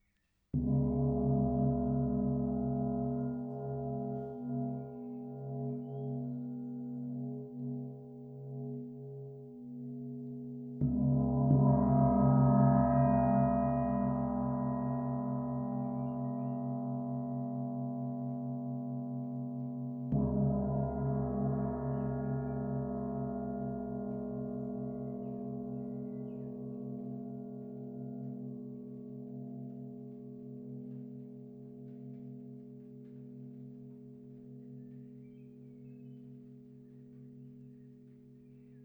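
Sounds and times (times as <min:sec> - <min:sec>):
gong: 0:00.6 - 0:38.2.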